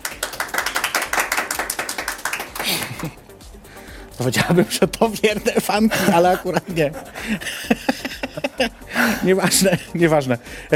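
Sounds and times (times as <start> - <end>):
audience applause: 0.0 - 3.2
laughter: 2.6 - 3.2, 4.3 - 10.0
speech: 2.6 - 3.2, 4.2 - 8.0, 8.6 - 10.7.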